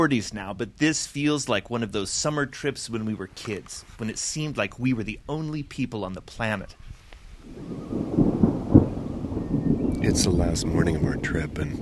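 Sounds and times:
speech: 0:00.0 - 0:08.2, 0:10.0 - 0:11.7
thunder rolling at dawn over Lake Lila: 0:07.4 - 0:11.7.

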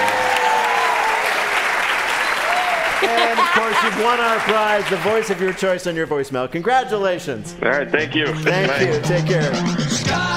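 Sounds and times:
audience applause: 0:00.0 - 0:05.8
laughter: 0:02.7 - 0:04.7, 0:07.6 - 0:09.4
speech: 0:03.0 - 0:10.2.

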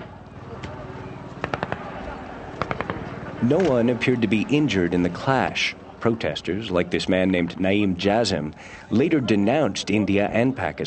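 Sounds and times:
bursts of automatic weapons fire: 0:01.4 - 0:02.0, 0:02.6 - 0:03.1
speech: 0:03.4 - 0:10.8.

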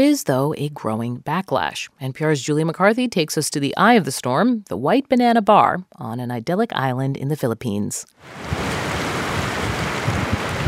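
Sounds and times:
speech: 0:00.0 - 0:08.7
Pacific ocean waves and surf at a beach bar in the Philippines: 0:08.2 - 0:10.6
wind noise: 0:08.2 - 0:10.6.

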